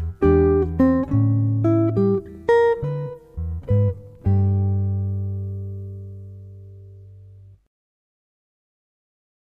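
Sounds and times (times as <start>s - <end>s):
basic blues guitar melody: 0.0s - 7.6s
simple bassline: 0.0s - 7.7s.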